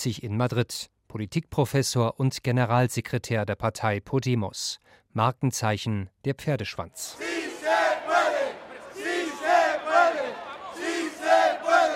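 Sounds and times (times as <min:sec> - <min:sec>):
speech: 0:00.0 - 0:07.8
crowd of supporters chanting a slogan: 0:07.0 - 0:11.9.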